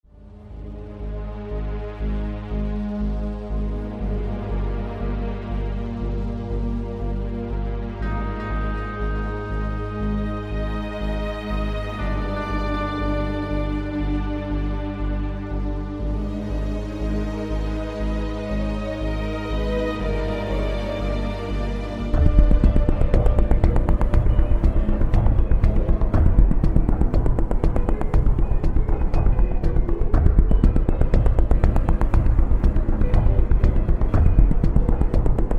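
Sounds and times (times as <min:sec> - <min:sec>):
soundtrack music: 0:00.1 - 0:35.5.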